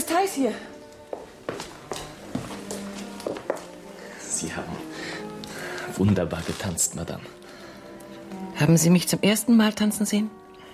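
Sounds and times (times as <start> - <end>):
speech: 0.1 - 0.8, 4.4 - 5.0, 5.9 - 7.6, 8.6 - 10.4
footsteps of people walking: 0.7 - 4.1.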